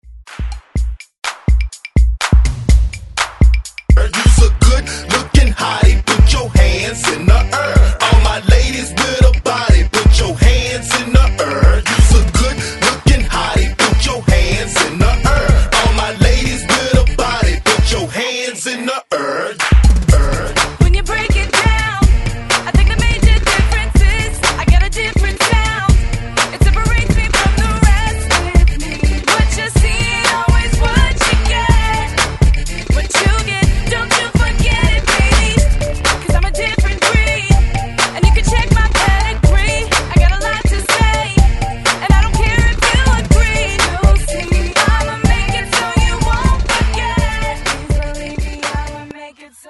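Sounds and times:
drum loop at 124 BPM: 0.0 - 18.0, 19.6 - 49.1.

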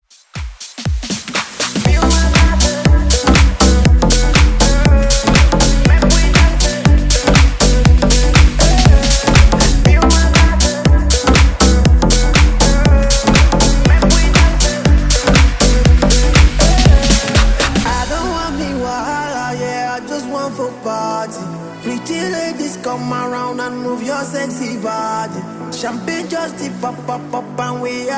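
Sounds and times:
dance music: 0.0 - 28.1.

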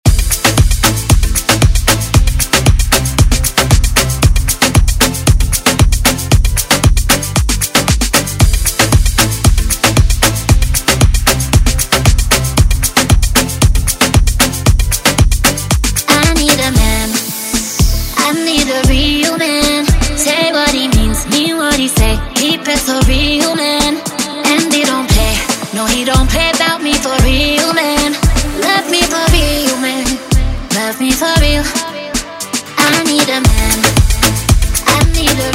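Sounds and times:
moombahton dance music: 0.0 - 35.5.

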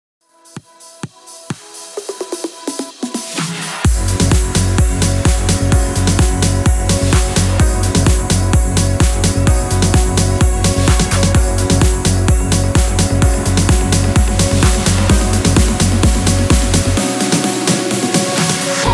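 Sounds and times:
progressive house music at 128 BPM: 0.3 - 18.9.

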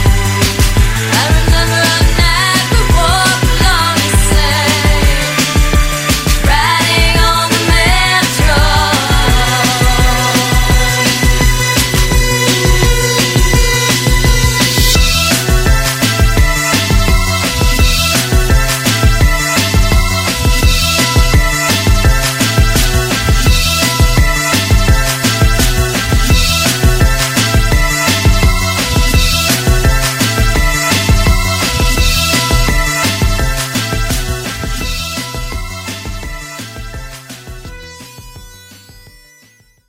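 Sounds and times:
80s drum machine beat at 169 bpm: 0.0 - 39.2.

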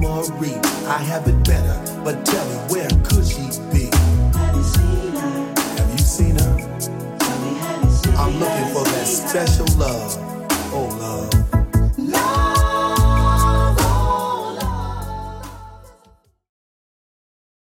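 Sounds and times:
Redrum drum machine beat: 0.8 - 14.8.

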